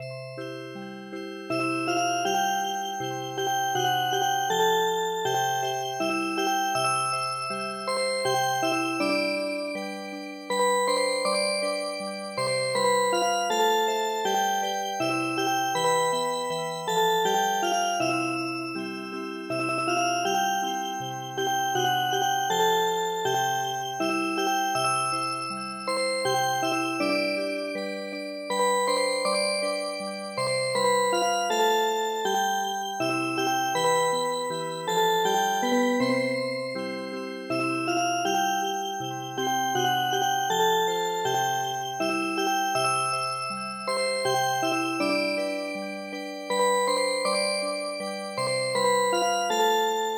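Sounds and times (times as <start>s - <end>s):
music box: 0.0s - 50.1s.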